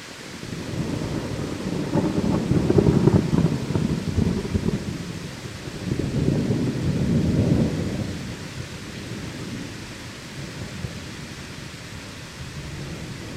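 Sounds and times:
heavy rain in a storm: 0.0 - 13.3
thunder in a storm: 0.5 - 9.8, 12.5 - 13.3.

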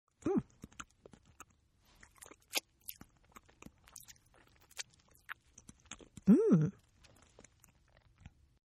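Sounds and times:
person eating: 0.2 - 8.4.

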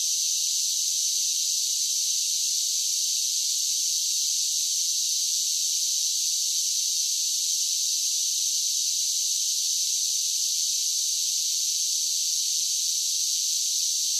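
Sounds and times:
cicada chorus drone: 0.0 - 14.1.

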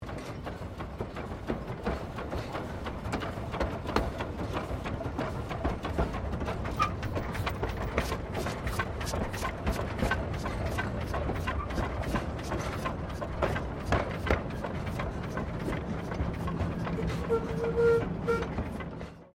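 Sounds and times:
steam train moving slowly: 0.0 - 19.3.

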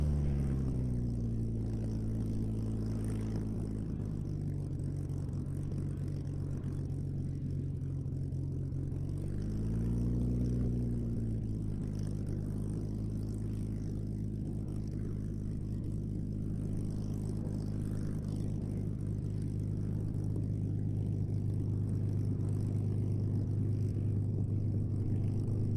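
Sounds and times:
Supermarine Spitfire Mk XVI aircraft preflight: 0.0 - 25.7.

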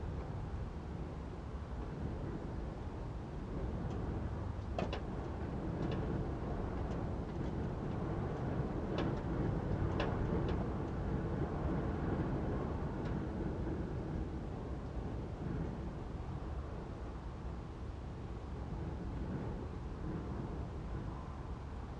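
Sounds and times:
light wind gusts in an interior attic space: 0.0 - 21.9.

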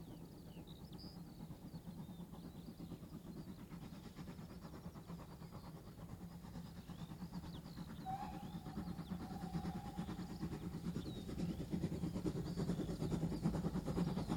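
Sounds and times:
steam train approaching and coasting past: 0.0 - 14.3
steam train whistle: 8.0 - 10.3.

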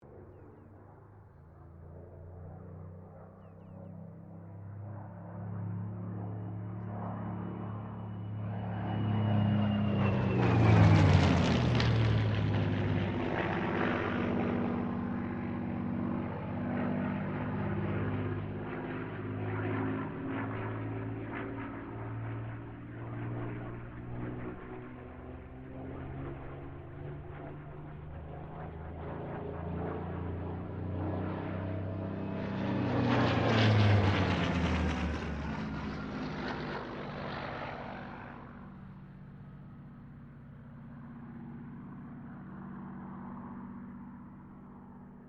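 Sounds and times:
Supermarine Spitfire Mk XVI aircraft passing: 0.0 - 45.2.

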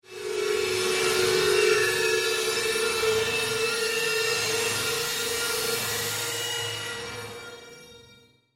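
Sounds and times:
dissonant horror psychic pain sound: 0.1 - 7.8.

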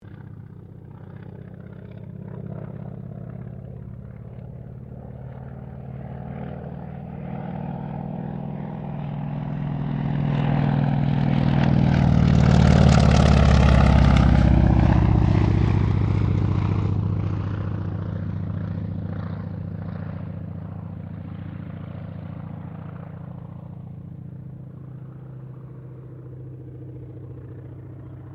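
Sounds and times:
CA-28 Ceres aircraft passing: 0.0 - 28.3.

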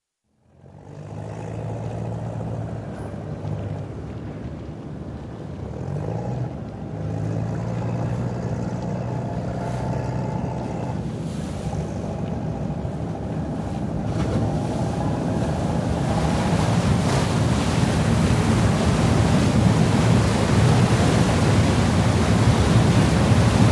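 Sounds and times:
Istanbul ferry engine running: 0.5 - 23.6
ship's siren: 9.7 - 17.3.

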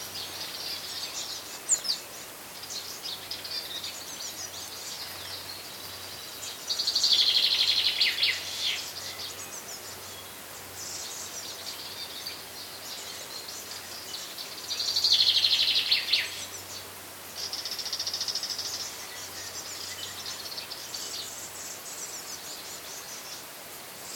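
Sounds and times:
chaffinch song on the Lassithi plateau in Greece: 0.0 - 23.4.

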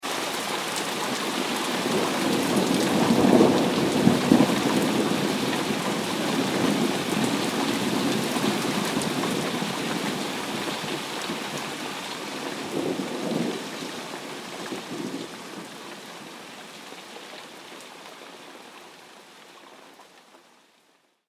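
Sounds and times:
heavy rain: 0.0 - 21.0
thunder: 1.8 - 9.2.

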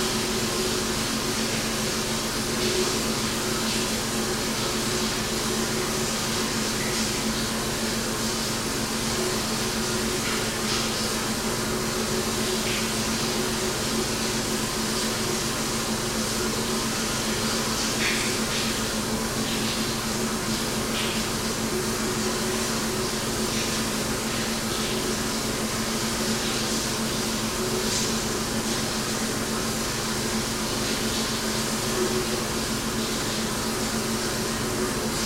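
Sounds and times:
locker room shower running: 0.0 - 35.2.

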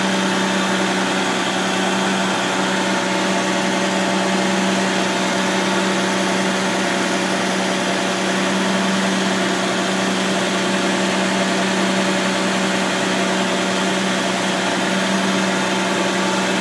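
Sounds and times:
aircraft fuel truck idling: 0.0 - 16.5.

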